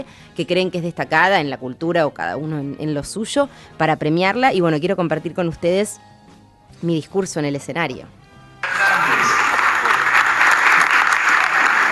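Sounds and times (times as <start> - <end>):
speech: 0.0 - 6.1, 6.8 - 8.2
audience applause: 8.6 - 11.8.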